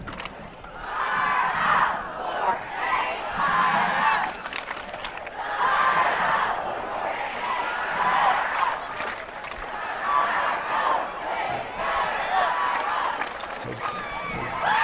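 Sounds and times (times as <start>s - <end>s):
crowd chanting at a school rally: 0.7s - 14.8s.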